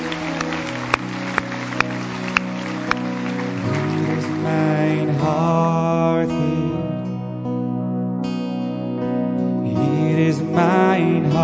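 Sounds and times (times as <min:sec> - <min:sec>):
audience applauding: 0:00.0 - 0:05.3
sustained musical tones: 0:00.0 - 0:11.4.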